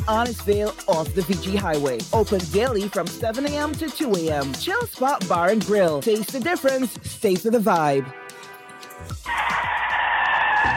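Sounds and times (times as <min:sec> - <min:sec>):
speech: 0:00.1 - 0:08.4
worn car tires skidding in an accident: 0:09.3 - 0:10.7.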